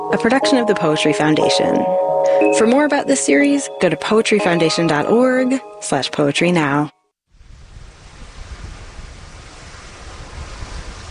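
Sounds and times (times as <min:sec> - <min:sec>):
speech: 0:00.1 - 0:07.0
Atlantic Ocean waves crashing against a 17-story cruise ship: 0:07.4 - 0:11.1.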